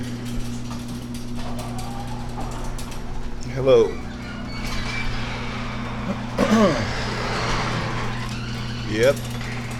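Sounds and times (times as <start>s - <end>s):
garage door opening: 0.0s - 9.7s
speech: 3.6s - 4.1s, 6.1s - 7.0s, 8.9s - 9.3s.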